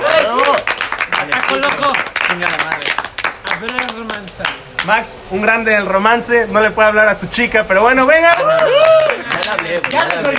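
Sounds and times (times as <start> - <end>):
applause: 0.0 - 4.9, 8.3 - 10.3
speech: 4.8 - 10.3.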